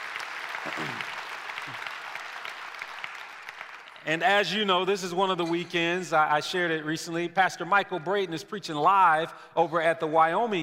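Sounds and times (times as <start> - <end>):
audience applause: 0.0 - 4.1
speech: 0.6 - 1.1, 4.0 - 10.6.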